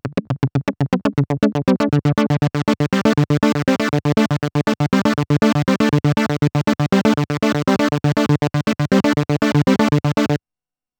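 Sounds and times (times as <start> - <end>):
Waldorf Blofeld synthesizer envelopes: 0.0 - 10.4.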